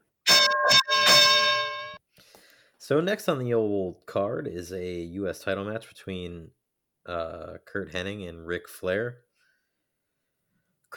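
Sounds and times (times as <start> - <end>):
bell clanging: 0.3 - 2.0
speech: 2.9 - 9.2.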